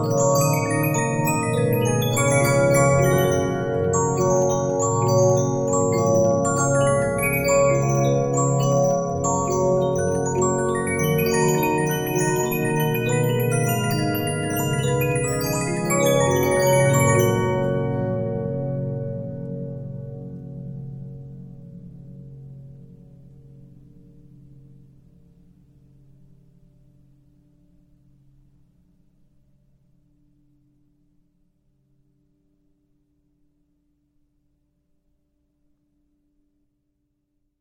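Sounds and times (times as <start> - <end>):
Regina 15-inch disc music box: 0.0 - 18.7.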